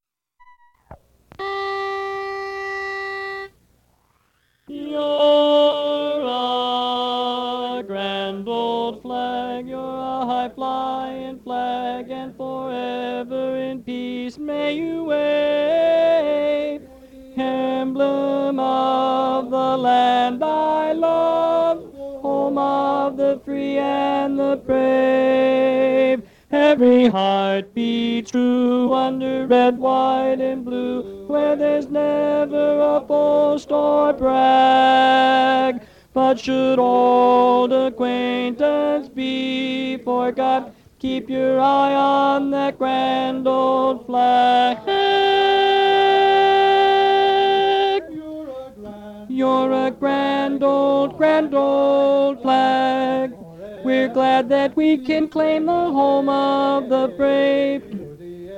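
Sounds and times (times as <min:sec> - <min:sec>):
tenor singing: 0:01.4 - 0:03.6, 0:04.7 - 0:58.5.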